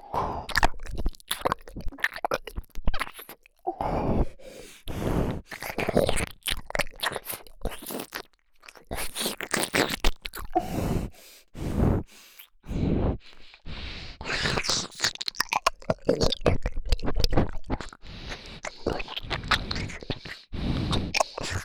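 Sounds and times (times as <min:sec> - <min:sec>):
ear licking sounds: 0:00.5 - 0:03.6, 0:04.2 - 0:21.6
nose breathing: 0:03.8 - 0:06.3, 0:08.9 - 0:15.1, 0:17.2 - 0:21.6.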